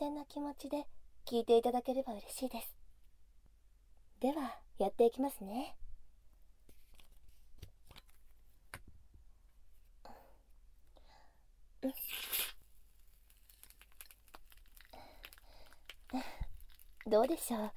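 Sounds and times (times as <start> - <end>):
speech: 0.0 - 2.8, 4.2 - 5.8, 11.8 - 12.6, 16.1 - 16.4, 17.0 - 17.7
crackling ear massage sounds: 12.0 - 17.7.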